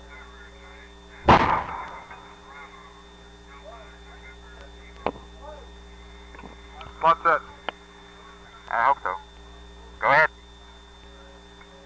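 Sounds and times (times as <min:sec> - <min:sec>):
steady hum: 0:00.0 - 0:11.8
artillery batteries firing: 0:01.2 - 0:02.3
speech: 0:07.0 - 0:07.5.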